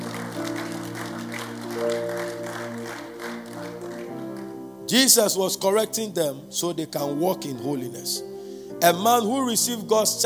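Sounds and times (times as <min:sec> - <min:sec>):
audience clapping: 0:00.0 - 0:04.7
speech: 0:04.9 - 0:10.2.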